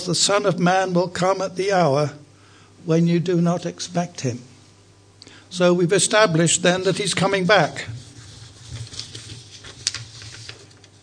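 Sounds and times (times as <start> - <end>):
speech: 0.0 - 2.2, 2.8 - 4.5, 5.5 - 8.0
paper rustling: 6.8 - 11.0.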